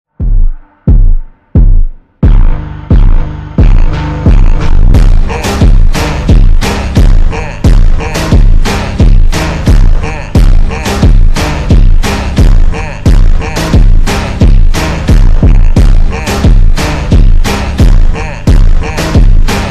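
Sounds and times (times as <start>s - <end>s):
super slowed reverb Brazilian phonk music: 0.1s - 19.6s.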